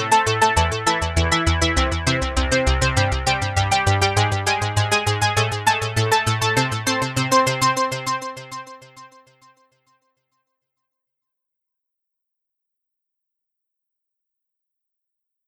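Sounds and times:
synthetic space music at 100 BPM: 0:00.0 - 0:09.2.

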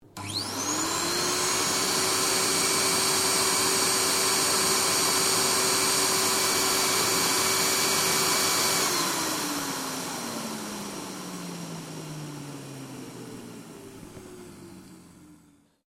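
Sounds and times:
vacuum cleaner switched on and off: 0:00.0 - 0:15.8.

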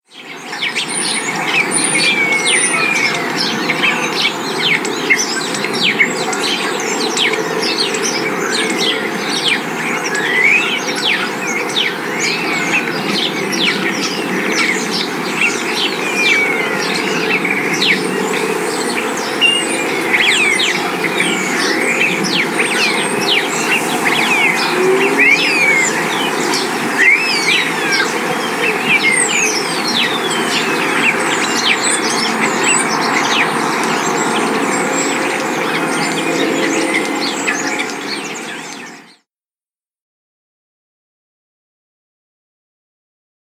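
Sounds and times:
birds singing in spring in a coastal town: 0:00.0 - 0:39.2.

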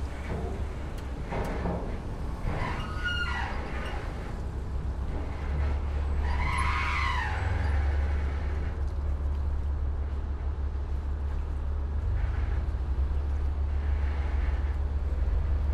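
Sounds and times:
ferry pulling into dock: 0:00.0 - 0:15.7.

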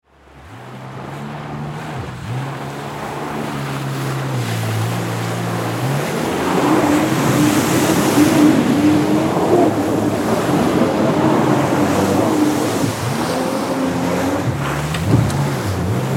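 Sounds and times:
jet ski riding in a circle: 0:00.1 - 0:16.1.

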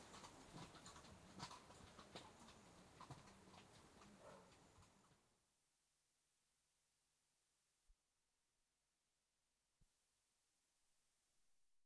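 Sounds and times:
two horses' hooves clopping while walking on a rough track: 0:00.0 - 0:05.3.

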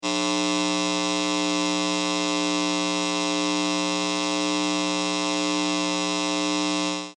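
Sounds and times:
high voltage electric lines buzzing: 0:00.0 - 0:07.1.

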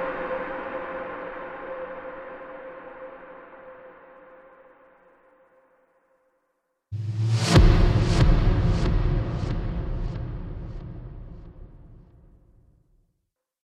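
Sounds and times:
trailer hits: 0:06.9 - 0:12.6.

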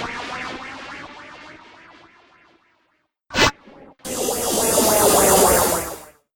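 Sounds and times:
phaser whooshes: 0:03.4 - 0:06.1.

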